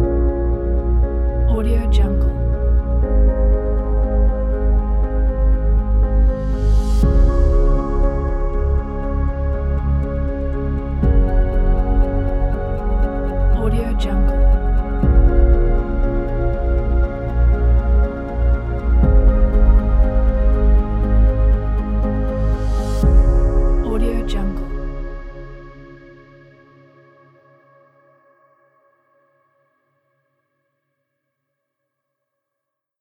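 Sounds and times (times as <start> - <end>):
emotional motivational epic trailer music: 0.0 - 26.1.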